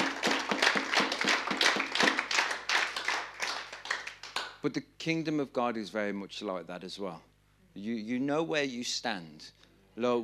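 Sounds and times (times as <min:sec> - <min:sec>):
audience clapping: 0:00.0 - 0:04.6
speech: 0:04.6 - 0:10.2.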